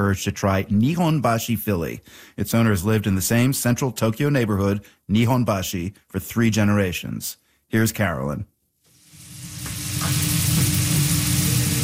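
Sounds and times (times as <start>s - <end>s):
speech: 0.0s - 8.5s
steak sizzling: 8.9s - 11.8s.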